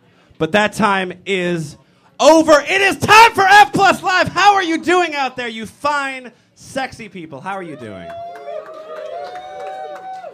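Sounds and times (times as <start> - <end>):
speech: 0.4 - 8.3
audience applause and cheering: 7.7 - 10.3.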